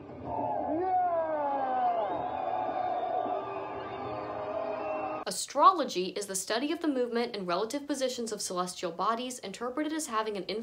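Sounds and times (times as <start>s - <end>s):
crowd cheering: 0.0s - 5.3s
speech: 5.3s - 10.6s.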